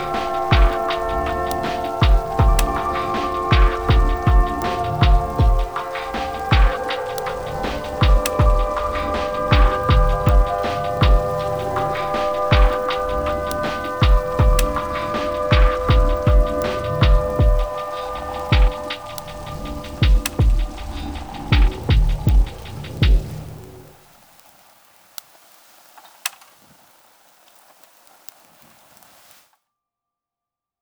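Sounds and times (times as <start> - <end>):
ambient music: 0.0 - 24.0.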